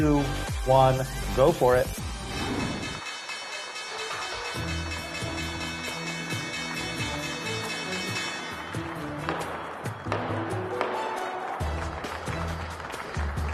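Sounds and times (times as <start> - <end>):
speech: 0.0 - 2.5
stock exchange closing bell ringing: 3.0 - 9.7
crowd clapping and cheering: 3.0 - 13.5.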